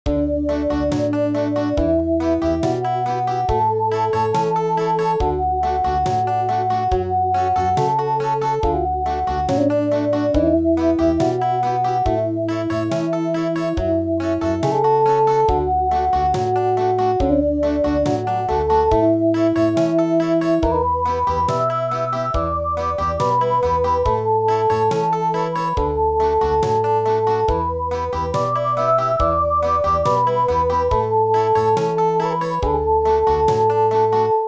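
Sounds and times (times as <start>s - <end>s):
country midi music: 0.1s - 34.4s.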